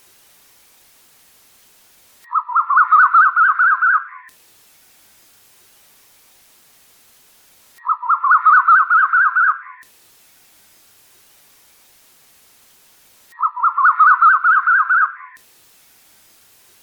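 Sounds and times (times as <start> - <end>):
bird chattering song: 2.3 - 4.3, 7.8 - 9.8, 13.4 - 15.4.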